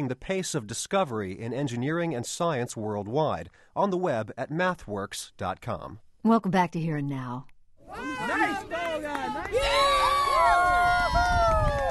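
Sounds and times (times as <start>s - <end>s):
speech: 0.0s - 10.0s
parents cheering and shouting at youth soccer game: 7.8s - 11.8s.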